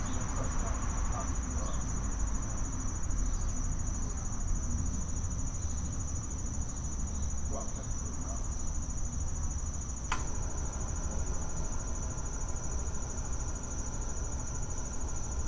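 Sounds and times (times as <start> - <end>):
high thin insect whine, likely crickets: 0.0 - 15.4
sharp click: 10.1 - 10.3.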